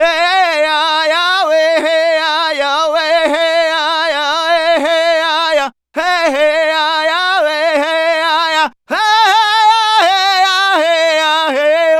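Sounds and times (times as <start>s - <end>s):
Native American vocals: 0.0s - 11.9s.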